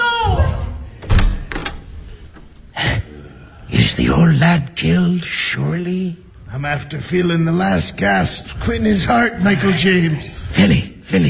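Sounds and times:
door opening and closing: 0.5s - 2.8s
speech: 4.0s - 11.2s.

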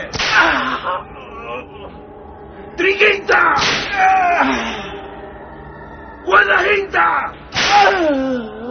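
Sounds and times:
triple-tailed flagrum whip crack on a man's back during a flogging: 0.1s - 0.6s, 3.6s - 4.0s, 7.5s - 8.0s
speech: 2.9s - 4.1s, 6.3s - 8.5s.

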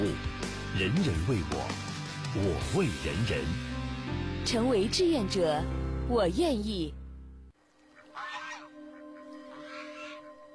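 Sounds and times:
speech: 0.2s - 7.0s
goose honking: 7.9s - 10.3s.

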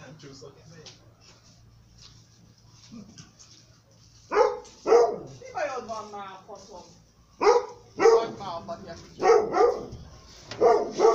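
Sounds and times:
speech: 0.3s - 1.1s
dog barking: 4.3s - 5.4s, 7.4s - 8.4s, 9.2s - 9.9s, 10.6s - 11.1s.

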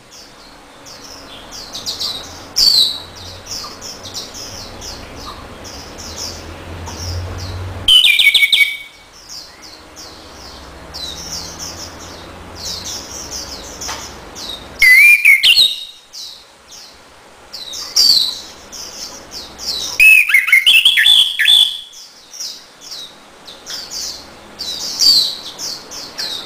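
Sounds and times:
orange-headed thrush singing warbled whistles: 7.9s - 9.6s, 14.8s - 16.0s, 19.8s - 22.1s.

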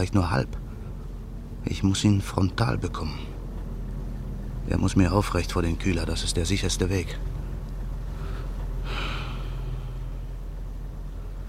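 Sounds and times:
speech: 0.0s - 0.6s, 1.6s - 3.3s, 4.7s - 7.4s
low engine-like hum: 0.0s - 11.4s
deep breathing of cold night air: 8.0s - 11.4s.

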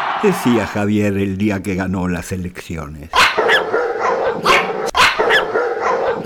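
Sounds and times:
laughter: 0.2s - 1.3s
speech: 0.2s - 3.2s
English mastiff barking: 3.1s - 6.2s.

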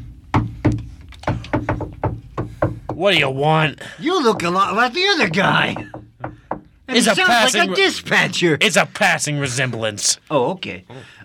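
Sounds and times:
knocking on a door: 0.0s - 3.2s, 4.2s - 7.4s
speech: 3.0s - 6.0s, 6.9s - 11.2s.

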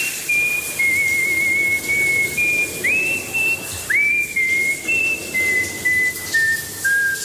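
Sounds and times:
person whistling a tune: 0.0s - 7.2s.

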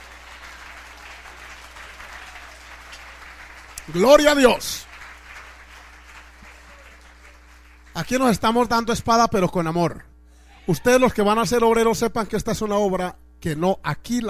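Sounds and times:
audience applauding: 0.0s - 8.4s
speech: 3.9s - 4.9s, 8.0s - 10.1s, 10.7s - 14.2s.

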